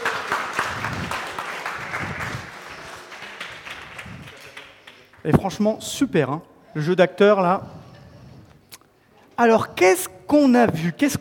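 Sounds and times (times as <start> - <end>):
audience applause: 0.0 - 5.2
speech: 5.2 - 7.8, 9.4 - 11.1.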